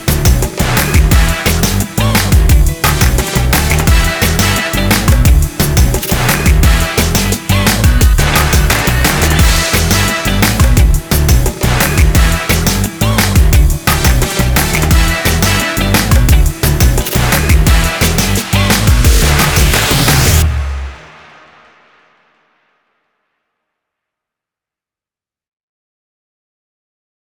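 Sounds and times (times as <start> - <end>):
instrumental music: 0.0 - 21.0.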